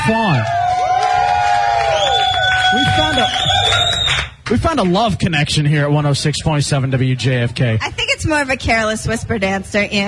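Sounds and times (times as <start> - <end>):
studio crowd cheering: 0.0 - 4.4
speech: 0.1 - 0.6, 2.8 - 3.8, 4.5 - 10.0.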